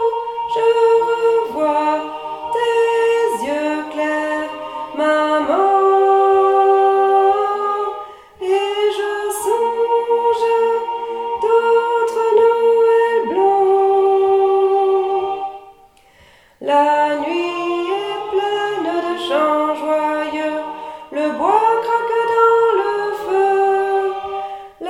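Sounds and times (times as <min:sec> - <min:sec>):
alto voice singing: 0:00.0 - 0:16.0, 0:16.6 - 0:24.8.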